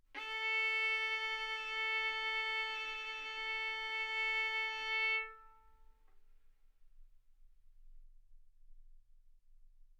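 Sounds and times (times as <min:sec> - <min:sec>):
violin bowed arco notes: 0:00.2 - 0:05.8.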